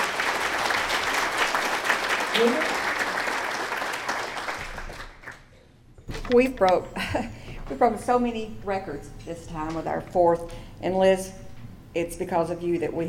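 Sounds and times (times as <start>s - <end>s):
audience applause: 0.0s - 5.5s
speech: 2.4s - 2.7s, 6.3s - 13.0s.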